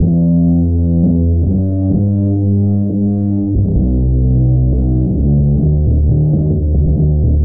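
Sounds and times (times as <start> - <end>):
bass loops: 0.0 - 7.4.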